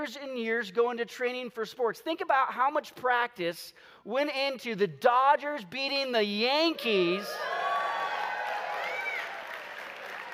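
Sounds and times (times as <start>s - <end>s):
speech: 0.0s - 7.6s
audience cheering and applause: 6.7s - 10.3s.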